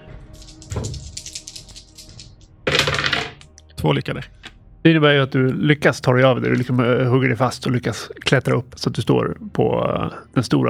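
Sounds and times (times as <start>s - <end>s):
dice clattering across a hard surface: 0.4s - 3.6s
speech: 3.8s - 10.6s.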